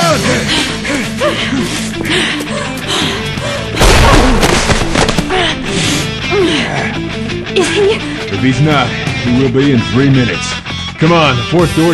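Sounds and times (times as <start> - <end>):
dramatic music: 0.0 - 10.2
plastic explosive detonating: 3.8 - 5.3
speech: 7.6 - 11.9.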